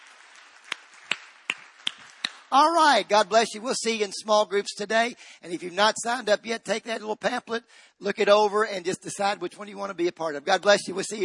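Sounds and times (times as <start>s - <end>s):
audience clapping: 0.0s - 3.2s
speech: 2.5s - 11.2s.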